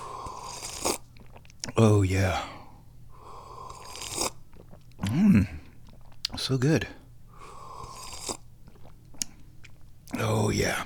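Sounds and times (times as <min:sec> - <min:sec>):
person sipping hot tea: 0:00.0 - 0:02.4, 0:03.2 - 0:06.3, 0:07.4 - 0:09.4
low steady hum: 0:00.0 - 0:10.8
speech: 0:01.8 - 0:02.6, 0:06.5 - 0:07.0.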